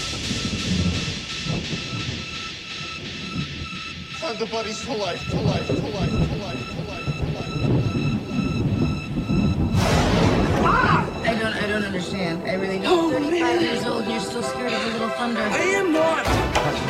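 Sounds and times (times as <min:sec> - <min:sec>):
thunder: 0:00.0 - 0:04.1, 0:05.2 - 0:12.3
speech: 0:04.3 - 0:06.6, 0:11.8 - 0:16.8.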